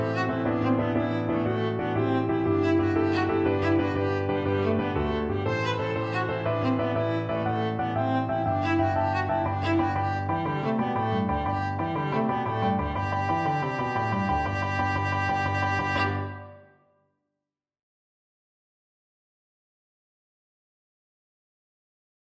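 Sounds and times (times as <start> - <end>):
viola: 0.0 - 16.7.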